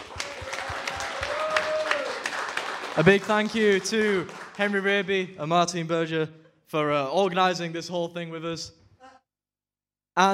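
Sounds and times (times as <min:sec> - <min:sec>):
audience applause and clapping: 0:00.0 - 0:05.2
speech: 0:03.0 - 0:08.8, 0:10.2 - 0:10.3.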